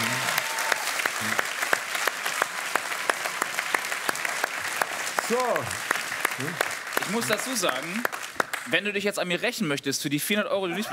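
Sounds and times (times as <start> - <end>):
audience applause: 0.0 - 8.8
speech: 1.2 - 1.5, 5.3 - 10.9.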